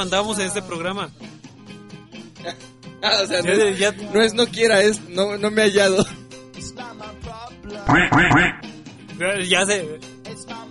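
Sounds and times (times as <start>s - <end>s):
speech: 0.0s - 1.3s, 2.4s - 6.2s, 7.9s - 8.6s, 9.2s - 10.1s
duck quacking: 7.9s - 8.6s.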